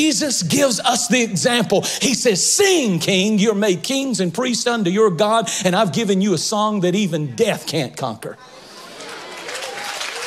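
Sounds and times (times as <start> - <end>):
speech: 0.0 - 8.6
audience clapping: 8.9 - 10.2.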